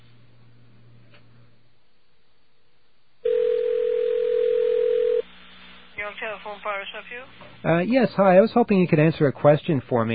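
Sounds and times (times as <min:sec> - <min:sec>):
telephone dial tone: 0:03.3 - 0:05.2
speech: 0:06.1 - 0:10.1.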